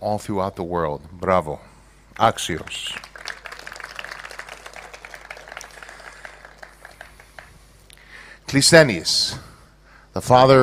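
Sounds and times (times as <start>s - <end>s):
speech: 0.0s - 3.1s, 8.5s - 9.5s, 10.1s - 10.6s
audience applause: 2.5s - 7.7s.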